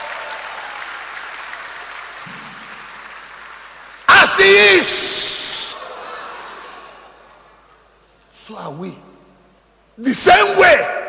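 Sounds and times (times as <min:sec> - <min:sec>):
audience applause: 0:00.0 - 0:07.6
speech: 0:04.3 - 0:05.2, 0:08.7 - 0:09.1, 0:10.0 - 0:10.9.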